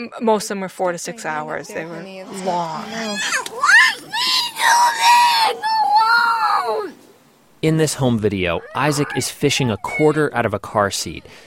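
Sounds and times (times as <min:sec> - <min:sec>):
speech: 0:00.0 - 0:07.0, 0:07.6 - 0:11.4
child screaming during a tantrum: 0:02.8 - 0:07.0, 0:08.6 - 0:10.3.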